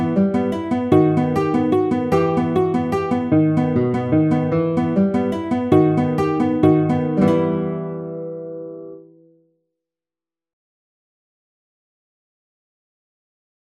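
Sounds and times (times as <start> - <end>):
guitar playing a waltz: 0.0 - 9.3.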